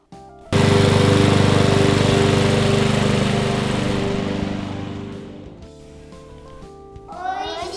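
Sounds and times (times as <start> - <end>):
farm machinery engine working in a rice paddy: 0.6 - 5.6.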